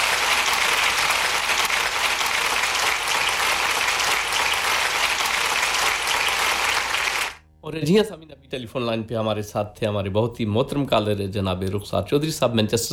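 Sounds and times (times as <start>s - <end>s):
crowd applause: 0.0s - 7.4s
speech: 7.7s - 12.9s.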